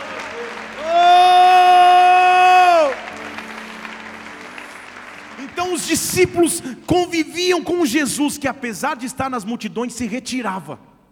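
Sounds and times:
audience applause: 0:00.0 - 0:06.9
speech: 0:05.7 - 0:10.9.

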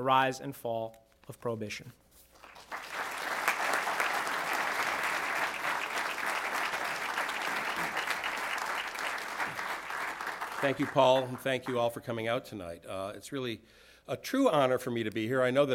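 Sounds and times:
speech: 0:00.0 - 0:02.0, 0:10.6 - 0:15.7
audience applause welcoming a speaker to a talk on Prohibition: 0:02.4 - 0:11.8.

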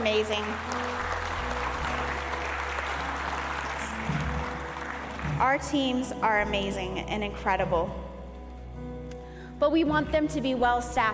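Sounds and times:
round of applause: 0:00.0 - 0:05.7
speech: 0:00.2 - 0:00.9, 0:05.4 - 0:08.0, 0:09.6 - 0:11.1.

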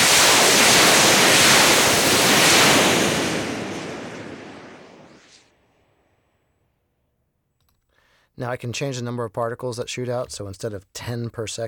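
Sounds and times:
rocket sound effects recorded with mono shotgun microphones: 0:00.0 - 0:05.5
speech: 0:08.4 - 0:11.6.

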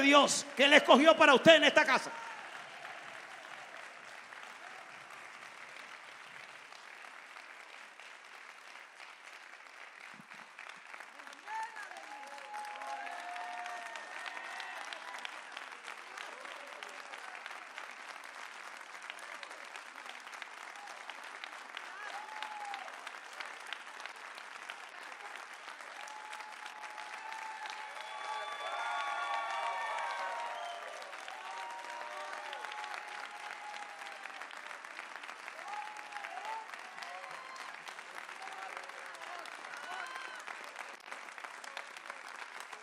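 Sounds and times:
speech: 0:00.0 - 0:02.3
scattered cheers: 0:00.0 - 0:05.4, 0:11.2 - 0:17.8, 0:21.8 - 0:23.4, 0:24.9 - 0:42.8
audience applause: 0:00.0 - 0:42.8.

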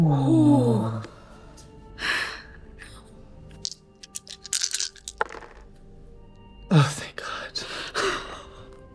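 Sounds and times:
speech: 0:00.0 - 0:01.1
handful of dice rattling onto a surface: 0:03.6 - 0:05.6.

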